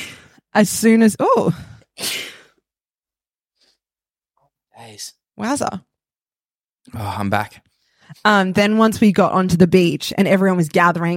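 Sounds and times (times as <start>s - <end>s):
speech: 0.5s - 2.2s, 4.9s - 5.9s, 6.8s - 11.1s
person sneezing: 2.0s - 2.6s.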